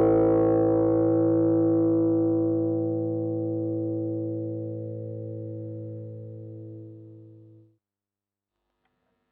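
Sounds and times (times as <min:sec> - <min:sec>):
electric guitar through overdrive pedal and 12-inch speaker: 0:00.0 - 0:07.6.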